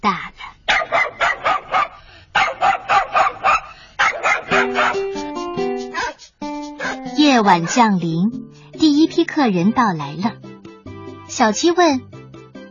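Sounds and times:
speech: 0:00.0 - 0:00.2, 0:07.4 - 0:10.4, 0:11.3 - 0:12.1
hound yelping and whining: 0:00.6 - 0:05.1, 0:06.8 - 0:07.9
hound dog barking: 0:00.7 - 0:05.1, 0:06.8 - 0:07.9.

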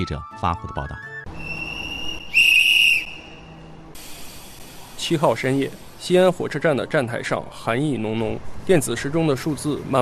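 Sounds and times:
speech: 0:00.0 - 0:01.4, 0:05.0 - 0:10.0
railway station attendant's urgent whistle: 0:01.4 - 0:03.5.

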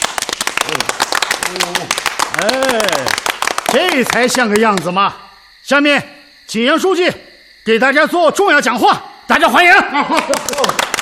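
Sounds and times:
clapping: 0:00.0 - 0:05.0, 0:10.1 - 0:11.0
speech: 0:02.4 - 0:10.8
laughter: 0:09.8 - 0:11.0.

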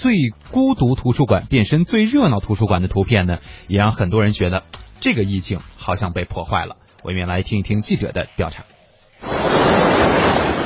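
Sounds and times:
speech: 0:00.0 - 0:09.8
ocean waves on a beach: 0:09.2 - 0:10.6.

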